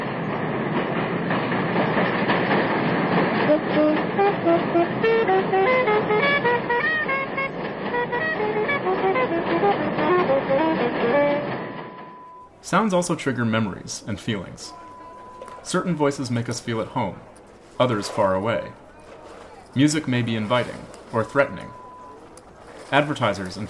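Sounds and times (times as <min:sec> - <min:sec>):
train passing over the Williamsburg Bridge: 0:00.0 - 0:23.6
speech: 0:12.7 - 0:14.8, 0:15.6 - 0:18.8, 0:19.7 - 0:21.8, 0:22.9 - 0:23.6.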